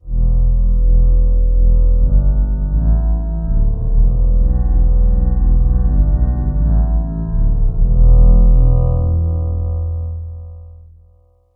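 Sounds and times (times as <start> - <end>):
metallic synth pad bass: 0.0 - 10.8.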